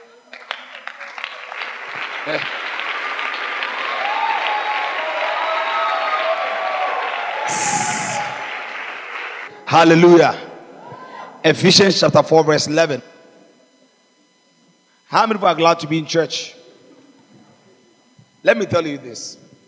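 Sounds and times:
audience clapping hands: 0:00.0 - 0:09.5
crowd voices and cheers: 0:00.0 - 0:09.6
speech: 0:02.2 - 0:02.6, 0:09.7 - 0:10.4, 0:11.4 - 0:13.1, 0:15.1 - 0:16.6, 0:18.4 - 0:19.4.

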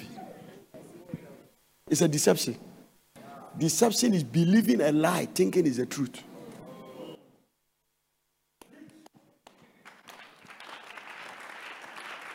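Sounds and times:
speech: 0:01.9 - 0:02.7, 0:03.6 - 0:06.3
audience clapping: 0:08.6 - 0:12.3.

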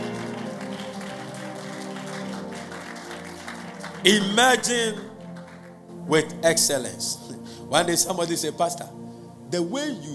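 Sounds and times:
audience clapping: 0:00.0 - 0:05.9
sustained musical tone: 0:00.0 - 0:09.8
speech: 0:04.0 - 0:05.1, 0:06.1 - 0:10.1.

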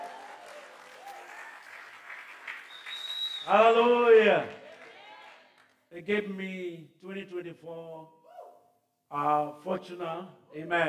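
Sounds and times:
audience clapping: 0:00.0 - 0:05.9
speech: 0:03.4 - 0:04.6, 0:06.0 - 0:08.2, 0:09.1 - 0:10.8.

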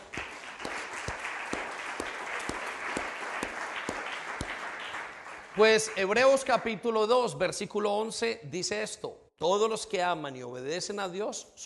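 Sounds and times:
audience applauding: 0:00.0 - 0:06.5
speech: 0:05.6 - 0:11.6.

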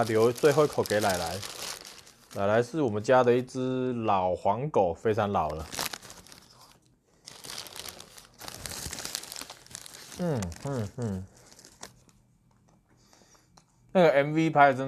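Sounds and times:
speech: 0:00.0 - 0:01.6, 0:02.3 - 0:05.8, 0:10.2 - 0:11.3, 0:14.0 - 0:14.8
Subway sandwich paper wrapper crinkling: 0:00.0 - 0:03.3, 0:05.4 - 0:12.2
person humming: 0:10.2 - 0:11.3.

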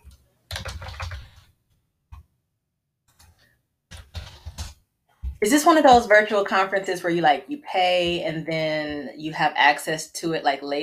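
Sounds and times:
typing on a computer keyboard: 0:00.5 - 0:01.4
speech: 0:05.4 - 0:10.8.

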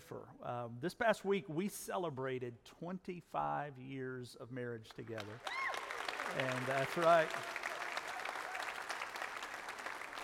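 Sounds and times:
speech: 0:00.1 - 0:05.6, 0:06.3 - 0:07.6
audience applause: 0:05.2 - 0:10.2.

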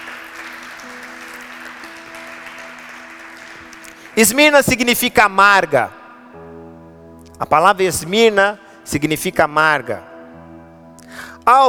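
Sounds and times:
audience applauding: 0:00.0 - 0:05.0
speech: 0:04.2 - 0:06.0, 0:07.4 - 0:10.1, 0:11.4 - 0:11.6.

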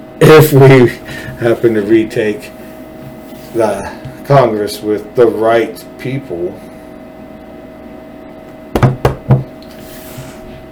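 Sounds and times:
speech: 0:00.2 - 0:02.6, 0:03.6 - 0:06.7
knocking on wood: 0:08.8 - 0:09.5.

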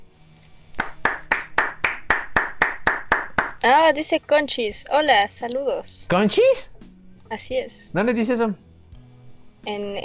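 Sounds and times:
clapping: 0:00.8 - 0:03.6
speech: 0:03.6 - 0:08.6, 0:09.6 - 0:10.0.

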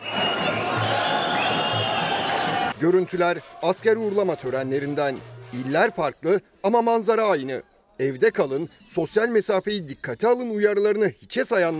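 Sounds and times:
crowd cheering at soldier send-off: 0:00.0 - 0:06.2
speech: 0:02.8 - 0:11.7.

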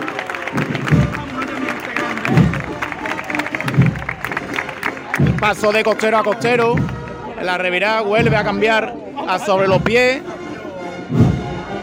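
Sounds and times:
audience applause: 0:00.0 - 0:07.4
speech: 0:05.4 - 0:10.3, 0:11.1 - 0:11.3.

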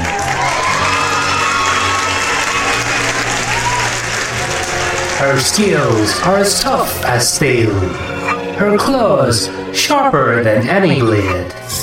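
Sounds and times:
audience applause: 0:00.0 - 0:08.0
audience cheering: 0:00.0 - 0:08.9
speech: 0:05.2 - 0:11.8.

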